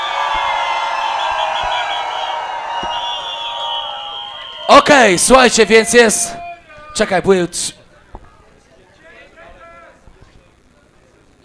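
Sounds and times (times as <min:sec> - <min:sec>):
crowd cheering and shouting: 0:00.0 - 0:07.2
sharp claps: 0:00.3 - 0:04.7
speech: 0:04.7 - 0:06.4, 0:07.0 - 0:07.8.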